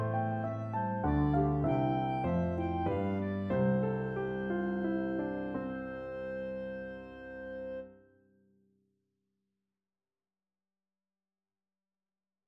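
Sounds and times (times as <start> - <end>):
clarinet trio: 0.0 - 7.8.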